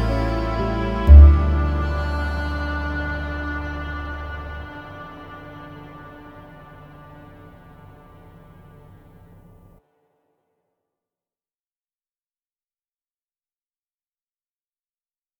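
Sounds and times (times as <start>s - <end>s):
ambient music: 0.0s - 9.8s.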